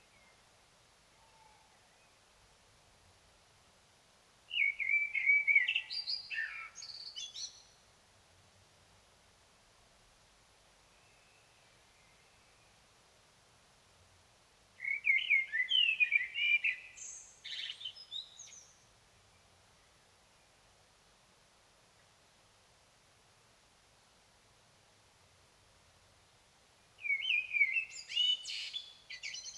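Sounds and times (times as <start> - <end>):
Common blackbird singing: 4.5 - 7.7, 14.8 - 18.8, 27.0 - 29.5.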